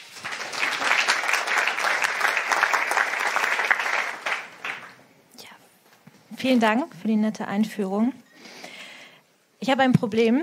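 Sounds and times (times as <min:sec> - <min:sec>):
crowd applause: 0:00.0 - 0:05.0
speech: 0:06.4 - 0:08.2, 0:09.6 - 0:10.4.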